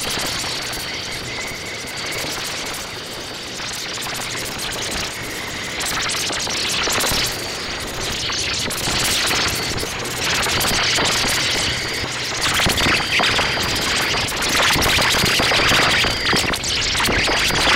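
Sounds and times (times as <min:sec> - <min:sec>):
electronic crickets over Ohio: 0:00.1 - 0:17.7.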